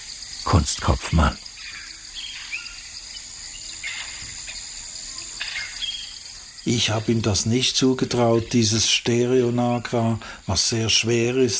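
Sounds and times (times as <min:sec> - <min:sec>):
high insect drone in a mangrove swamp: 0:00.0 - 0:11.5
speech: 0:00.4 - 0:01.5, 0:06.6 - 0:11.5
bird chirps and calls in a mangrove swamp: 0:01.2 - 0:04.6, 0:05.4 - 0:07.3.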